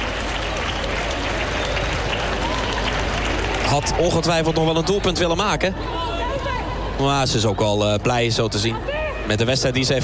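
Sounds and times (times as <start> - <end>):
audience applause: 0.0 - 5.0
speech: 3.7 - 6.1, 7.0 - 10.0.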